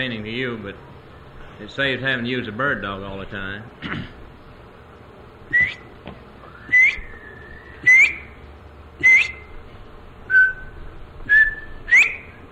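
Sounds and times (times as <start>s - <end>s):
speech: 0.0s - 1.0s, 1.6s - 4.1s, 5.5s - 6.2s
whistled imitation of a quail call: 5.5s - 5.9s, 6.5s - 8.4s, 9.0s - 9.6s, 10.3s - 12.4s.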